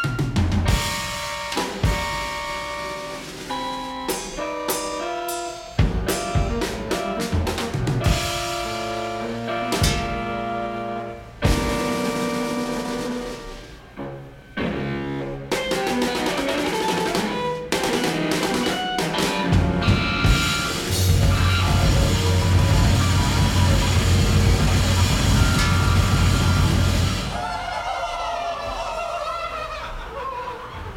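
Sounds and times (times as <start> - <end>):
piano played live: 0.0 - 28.9
drums played live: 0.0 - 30.9
laughter: 21.4 - 30.9.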